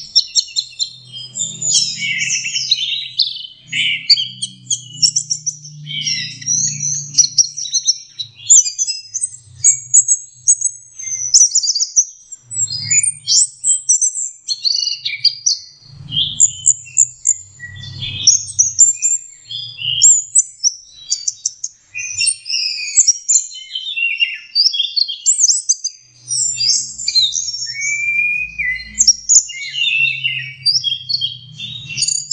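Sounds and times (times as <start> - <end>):
orange-headed thrush song: 0.0 - 32.3.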